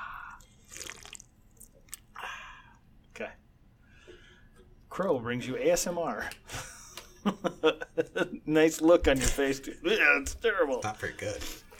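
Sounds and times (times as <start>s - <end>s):
person drinking a beverage: 0.0s - 2.8s
moist slurping mouth noises: 0.4s - 2.2s
speech: 3.2s - 3.4s, 4.9s - 6.4s, 7.2s - 11.7s.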